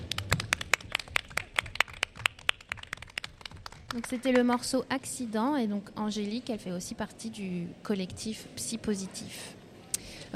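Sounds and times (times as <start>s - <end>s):
audience applauding: 0.0s - 4.6s
speech: 3.9s - 9.6s.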